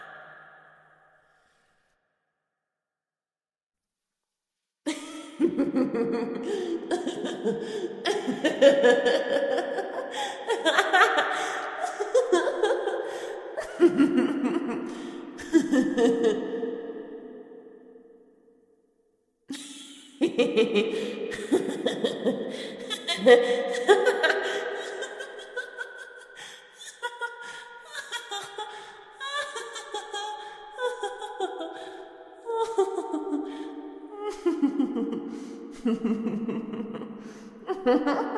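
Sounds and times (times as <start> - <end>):
scary possessed nun laughing: 4.9 - 17.0, 19.6 - 38.3.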